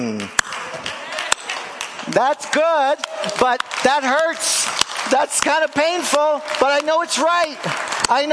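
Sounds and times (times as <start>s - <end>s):
hand claps: 0.0s - 8.3s
speech: 2.1s - 8.3s.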